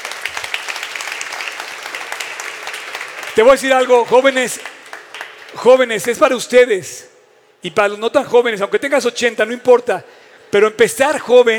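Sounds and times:
crowd clapping: 0:00.0 - 0:06.3
speech: 0:03.4 - 0:04.8, 0:05.5 - 0:11.5.

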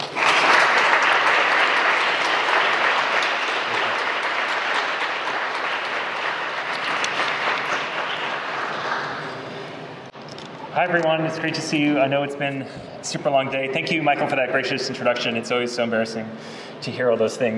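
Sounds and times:
audience applause welcoming a professor at an academic talk: 0:00.0 - 0:10.0
speech: 0:10.8 - 0:17.5.

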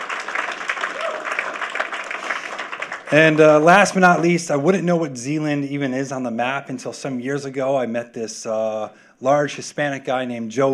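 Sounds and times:
audience applause: 0:00.0 - 0:04.2
speech: 0:03.1 - 0:10.7.

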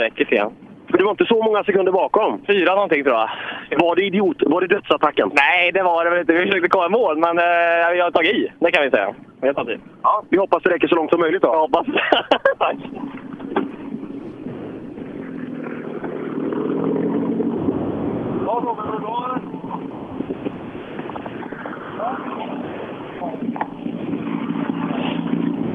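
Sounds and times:
speech: 0:00.0 - 0:13.2
wind noise: 0:11.7 - 0:25.7
laughter: 0:11.8 - 0:13.9
self-built replica rally car engine arriving at the finish line: 0:11.9 - 0:25.7.

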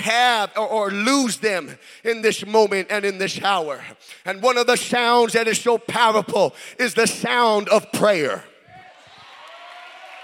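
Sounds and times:
speech: 0:00.0 - 0:08.5
audience clapping hands: 0:09.1 - 0:10.2.

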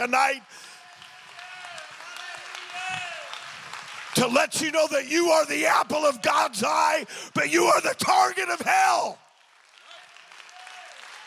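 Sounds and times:
speech: 0:00.0 - 0:00.7, 0:04.2 - 0:09.2
congregation clapping hands in a church sanctuary during a sermon: 0:00.0 - 0:11.2.

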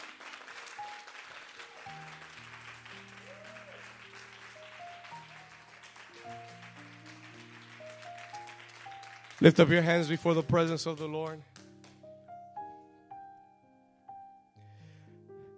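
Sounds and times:
audience clapping: 0:00.0 - 0:12.2
sustained keyboard chords: 0:00.0 - 0:15.5
speech: 0:09.4 - 0:11.5.

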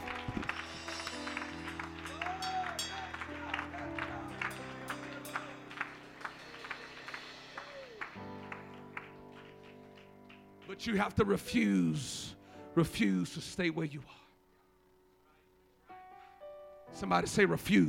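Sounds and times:
audience clapping: 0:00.0 - 0:11.3
organ-like chords: 0:00.0 - 0:13.6
speech: 0:10.8 - 0:14.2, 0:17.0 - 0:17.8.

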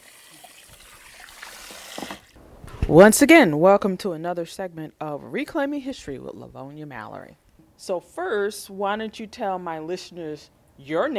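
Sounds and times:
water trickling at a hair salon: 0:00.0 - 0:02.4
speech: 0:02.9 - 0:11.1.

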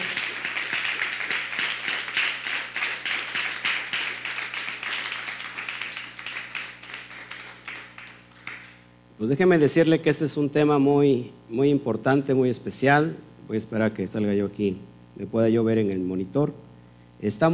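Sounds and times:
crowd applause: 0:00.0 - 0:08.8
low steady hum: 0:00.0 - 0:17.5
speech: 0:09.2 - 0:17.5.

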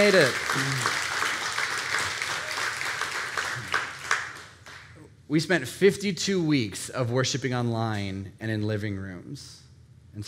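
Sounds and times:
speech: 0:00.0 - 0:01.0, 0:05.3 - 0:10.2
audience applause: 0:00.0 - 0:04.9.

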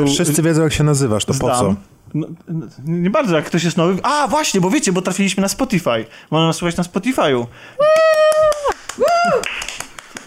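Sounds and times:
speech: 0:00.0 - 0:09.6
one person's steady hand claps: 0:07.8 - 0:10.2.

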